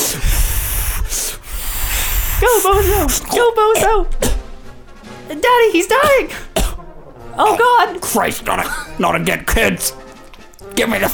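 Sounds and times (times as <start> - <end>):
rubber balloon squeaking while twisted into an animal: 0.0 - 4.5
speech: 2.4 - 4.4, 5.3 - 6.5, 7.4 - 10.0, 10.8 - 11.1.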